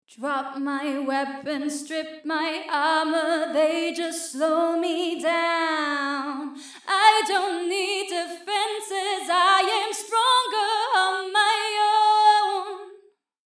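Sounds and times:
female vocals: 0.1s - 13.0s.

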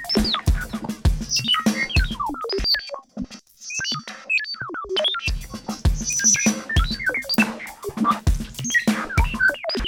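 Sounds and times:
drum: 0.0s - 2.8s, 5.3s - 9.7s.

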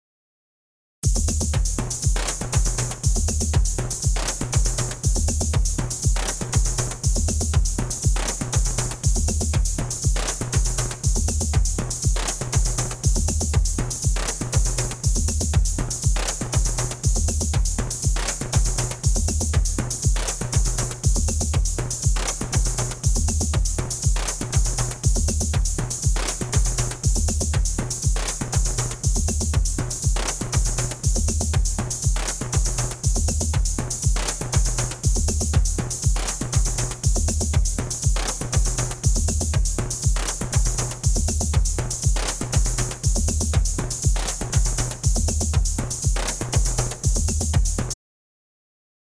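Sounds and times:
drums: 1.0s - 48.0s.

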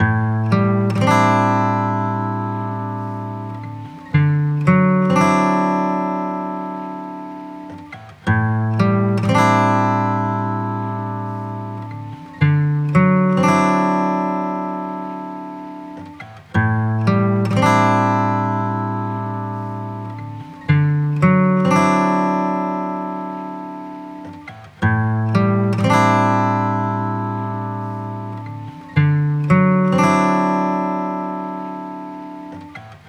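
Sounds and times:
guitar: 0.0s - 33.0s.

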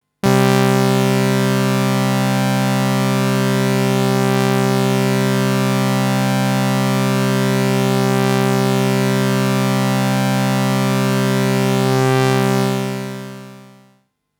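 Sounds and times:
Juno 60 synthesizer phasing: 0.2s - 13.9s.

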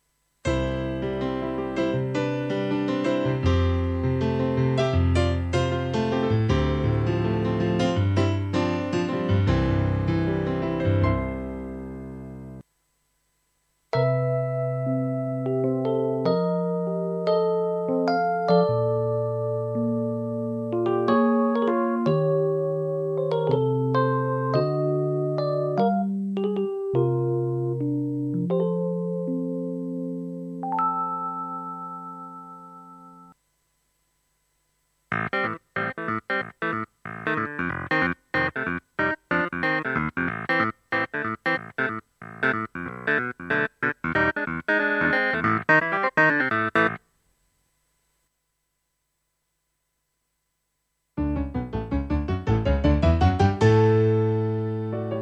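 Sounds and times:
solo keyboards playing: 0.4s - 11.9s, 13.9s - 33.3s, 35.1s - 47.0s, 51.2s - 55.1s.

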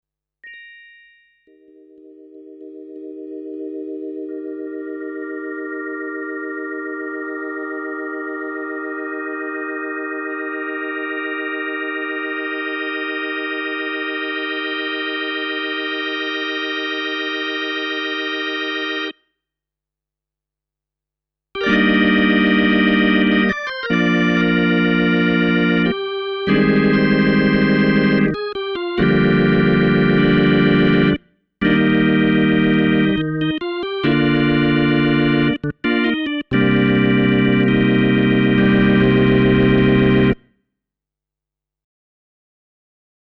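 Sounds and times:
organ with three drawbars: 1.6s - 19.2s, 21.6s - 40.4s.

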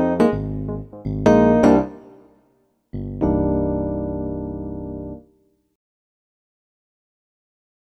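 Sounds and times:
electric piano: 0.0s - 2.3s, 3.0s - 5.3s.

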